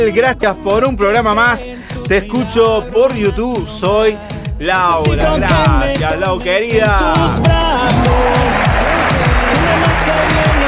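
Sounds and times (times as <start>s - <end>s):
speech: 0.0s - 8.7s
applause: 7.8s - 10.6s.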